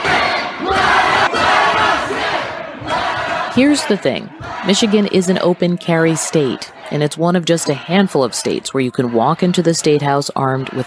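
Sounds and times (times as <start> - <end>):
large protest crowd chanting and shouting: 0.0 - 10.8
speech: 3.6 - 10.8.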